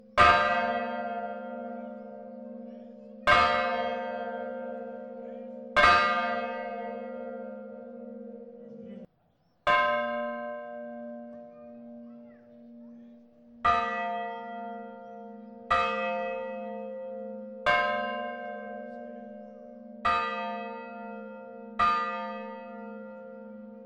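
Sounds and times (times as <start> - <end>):
bell: 0.0 - 9.1, 9.7 - 23.8.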